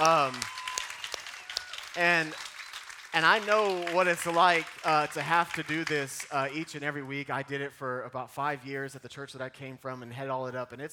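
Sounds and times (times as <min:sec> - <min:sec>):
audience applause: 0:00.0 - 0:06.8
speech: 0:02.0 - 0:02.5, 0:03.1 - 0:10.9.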